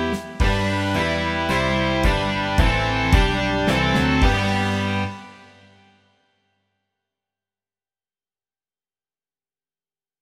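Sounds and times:
rock music: 0.0s - 5.8s.

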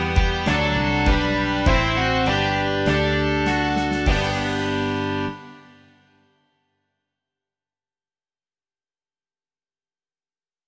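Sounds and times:
rock music: 0.0s - 6.2s.

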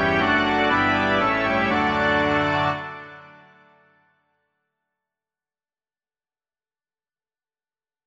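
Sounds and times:
organ: 0.0s - 3.9s.

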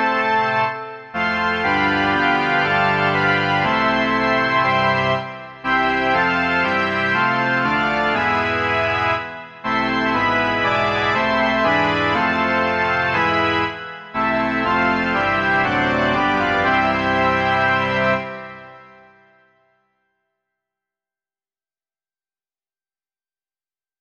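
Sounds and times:
pipe organ: 0.0s - 19.6s.

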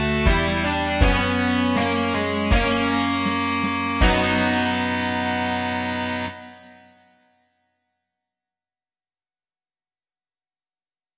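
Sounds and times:
rock music: 0.0s - 7.0s.

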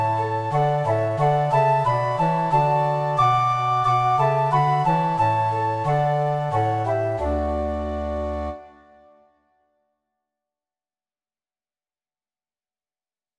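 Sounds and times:
trio of flutes and bassoon: 0.0s - 9.2s.

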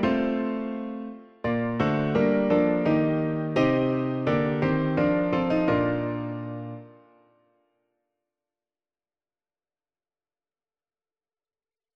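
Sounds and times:
piano: 0.0s - 7.6s.

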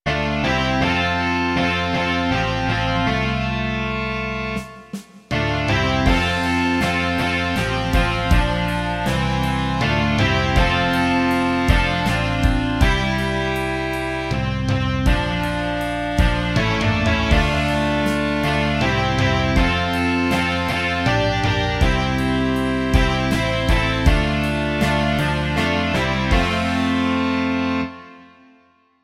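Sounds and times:
rock music: 0.1s - 28.4s.

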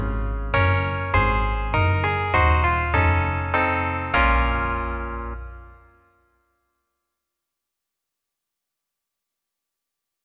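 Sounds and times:
electric clavichord: 0.0s - 5.4s
double bass: 0.0s - 5.8s.

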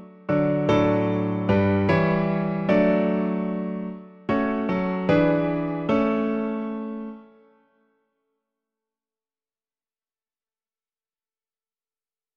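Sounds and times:
piano version of a hymn: 0.0s - 7.7s.

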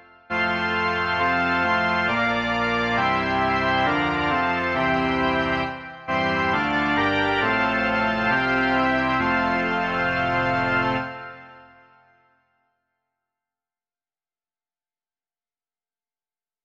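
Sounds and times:
organ: 0.0s - 12.1s.

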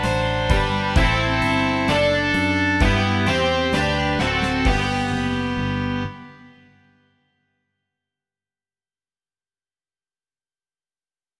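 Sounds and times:
rock music: 0.0s - 6.9s.

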